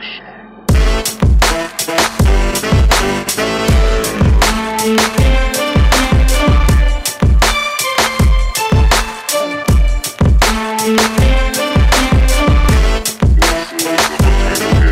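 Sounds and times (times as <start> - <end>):
music beat: 0.7 - 14.9.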